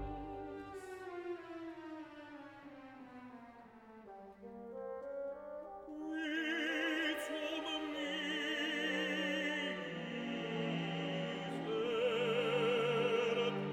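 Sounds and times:
soprano singing: 0.0 - 1.2, 5.9 - 13.7.

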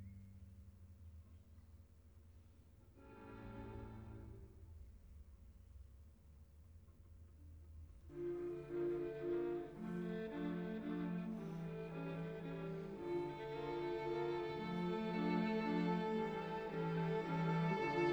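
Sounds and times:
string quartet adagio in F major: 2.9 - 4.8, 8.1 - 18.1.

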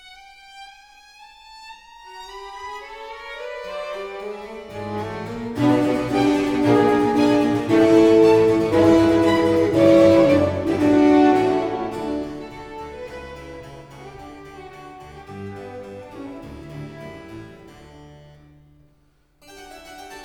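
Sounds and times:
keyboard concerto allegro: 4.5 - 17.7.

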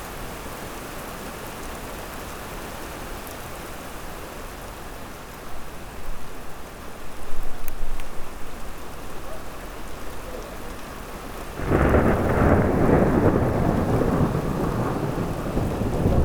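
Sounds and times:
rain in Oregon: 0.0 - 16.2
light thunderstorm in Oregon: 7.2 - 16.2.

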